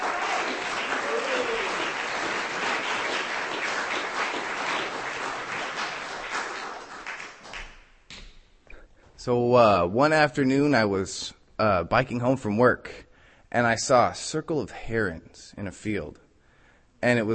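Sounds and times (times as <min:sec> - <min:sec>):
audience applause at a reading: 0:00.0 - 0:07.7
speech: 0:09.2 - 0:16.2, 0:17.0 - 0:17.3.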